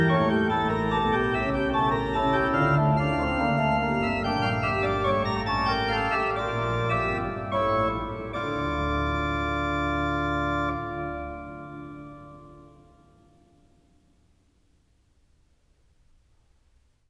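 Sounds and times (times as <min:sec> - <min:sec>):
baroque trio sonata on a great organ: 0:00.0 - 0:13.2.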